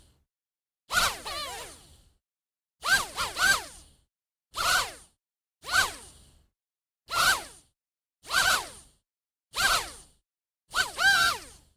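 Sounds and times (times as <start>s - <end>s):
quadcopter drone: 0.9s - 1.9s, 2.8s - 3.9s, 4.6s - 6.2s, 7.1s - 8.9s, 9.5s - 11.7s.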